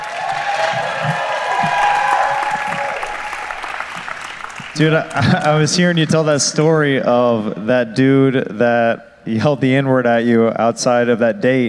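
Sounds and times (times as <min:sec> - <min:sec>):
audience applause: 0:00.0 - 0:06.0
speech: 0:04.8 - 0:11.6.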